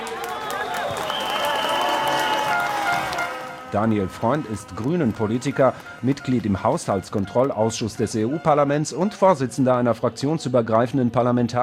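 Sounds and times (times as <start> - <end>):
crowd cheering and applauding: 0.0 - 8.2
speech: 3.7 - 11.6.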